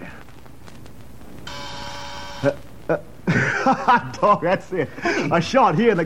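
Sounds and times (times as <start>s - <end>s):
faint steady hum: 0.0s - 6.0s
continuity tester buzzer buzzing: 1.4s - 2.6s
speech: 2.4s - 6.0s
laughter: 2.9s - 5.5s.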